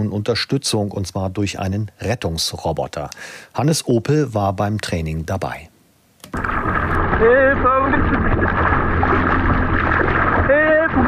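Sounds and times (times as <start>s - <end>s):
speech: 0.0s - 5.7s, 7.2s - 8.8s
swimmer in distress in the Baltic Sea off Warnemünde: 6.4s - 11.0s.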